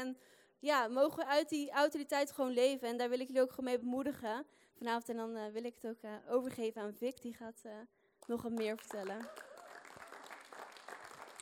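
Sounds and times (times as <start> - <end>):
speech: 0.0 - 9.6
audience applause: 8.8 - 11.3.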